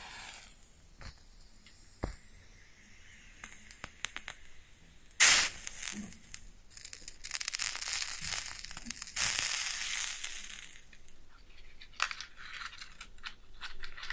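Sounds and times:
match struck with a scrape and flare: 0.0 - 11.2
burning match fizzing crackles and sizzles: 0.0 - 14.1.

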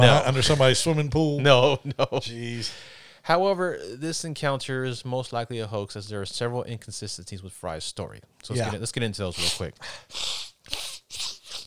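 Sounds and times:
speech: 0.0 - 10.9
person sniffing: 9.4 - 11.6.

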